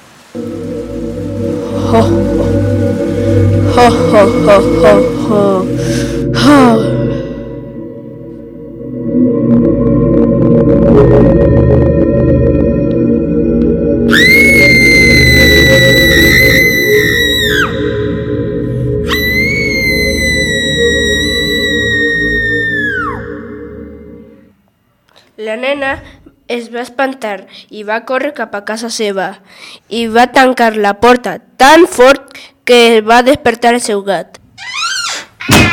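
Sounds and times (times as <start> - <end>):
terrifying voice from abandoned house: 0.4 - 24.5
speech: 1.9 - 2.8, 3.8 - 7.0, 26.7 - 35.6.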